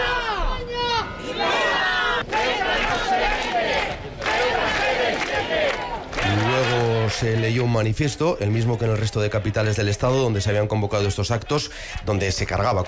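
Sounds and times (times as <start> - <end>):
protest crowd shouting and chanting: 0.0 - 12.8
speech: 7.2 - 12.8.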